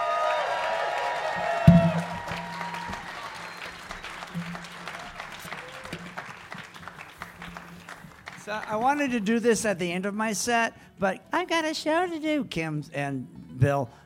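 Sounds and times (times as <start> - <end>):
audience applause: 0.0 - 9.1
thump: 1.7 - 2.5
speech: 8.5 - 14.0.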